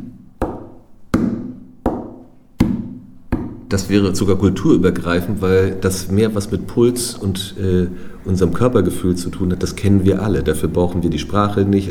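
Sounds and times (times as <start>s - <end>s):
low and high tapping on a table: 0.0s - 3.7s
speech: 3.7s - 11.9s.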